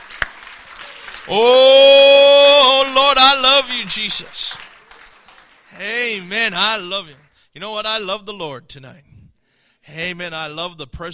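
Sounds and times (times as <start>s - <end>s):
hand clapping of praise in the sanctuary: 0.0s - 1.4s, 2.6s - 7.4s
speech: 1.2s - 2.0s, 3.1s - 4.7s, 5.7s - 9.1s, 9.8s - 11.1s.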